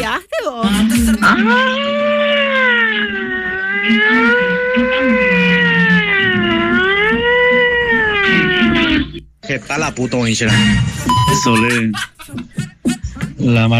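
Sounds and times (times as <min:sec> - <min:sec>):
speech: 0:00.2 - 0:01.9, 0:09.5 - 0:12.5, 0:13.4 - 0:13.7
laughter: 0:00.6 - 0:01.9, 0:10.5 - 0:13.4
low hum: 0:00.6 - 0:09.3
loud alarm wailing: 0:00.7 - 0:09.2, 0:11.1 - 0:11.7.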